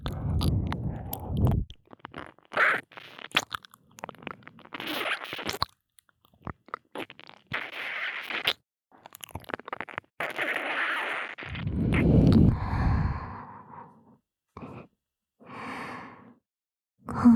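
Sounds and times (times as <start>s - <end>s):
kissing and licking sounds in the right ear: 0.0s - 5.7s, 6.4s - 12.5s.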